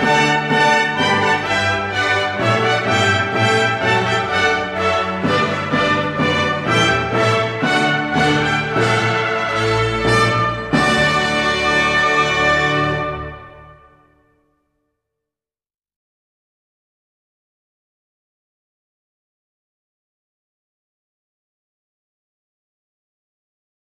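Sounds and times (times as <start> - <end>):
minuet: 0.0 - 14.3.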